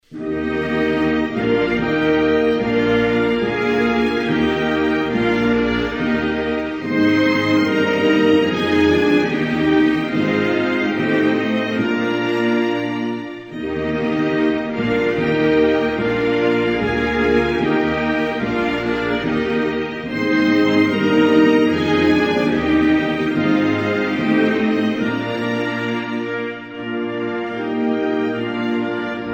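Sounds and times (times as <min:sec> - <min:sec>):
national anthem: 0:00.0 - 0:29.3.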